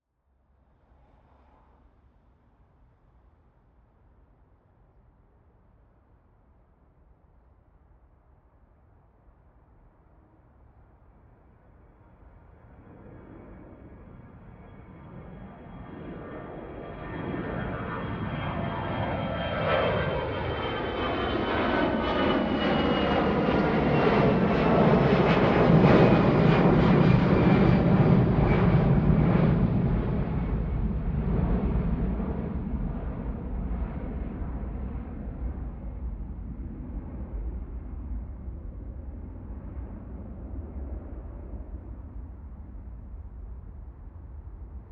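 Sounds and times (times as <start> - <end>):
planes taking off: 12.0 - 44.9.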